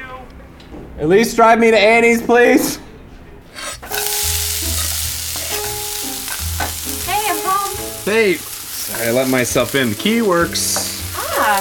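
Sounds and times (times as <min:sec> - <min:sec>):
speech: 0:01.0 - 0:02.8, 0:08.0 - 0:10.8, 0:11.4 - 0:11.6
metallic scraping and stirring: 0:03.6 - 0:11.6
bacon and mussels sizzling in a pan: 0:03.8 - 0:11.6.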